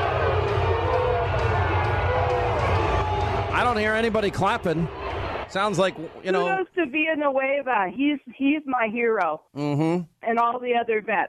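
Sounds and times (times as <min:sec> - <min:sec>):
crowd booing: 0:00.0 - 0:06.2
speech: 0:03.7 - 0:11.2.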